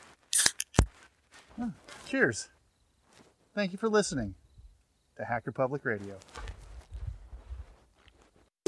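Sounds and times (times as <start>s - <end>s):
beer can being cracked open: 0.3s - 0.9s
speech: 1.6s - 2.6s, 3.6s - 4.4s, 5.2s - 6.4s.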